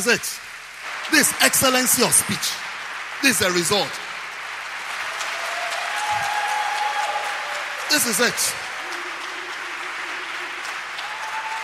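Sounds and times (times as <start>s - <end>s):
speech: 0.0s - 0.5s, 1.1s - 4.1s, 7.9s - 8.7s
audience clapping: 0.0s - 11.6s.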